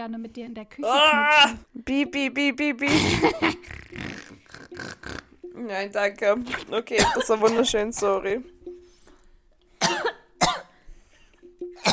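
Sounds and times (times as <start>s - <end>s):
speech: 0.0s - 4.1s, 4.7s - 8.6s
person coughing after choking on saliva: 7.0s - 7.7s, 9.8s - 10.7s.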